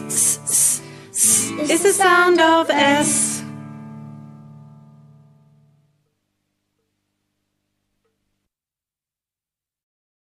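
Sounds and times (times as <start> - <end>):
sausages sizzling: 0.0 - 2.2
speech: 0.1 - 0.4, 1.6 - 3.2.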